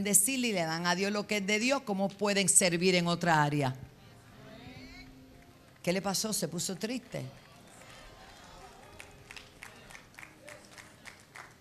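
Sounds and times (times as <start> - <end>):
speech: 0.0 - 3.9, 5.8 - 7.4
few people clapping: 4.2 - 11.5.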